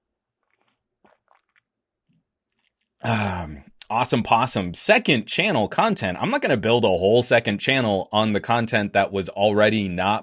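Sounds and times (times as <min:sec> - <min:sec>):
person drinking water, gulping: 0:00.3 - 0:03.9
small wet mouth noises: 0:00.4 - 0:03.9
speech: 0:03.0 - 0:10.2.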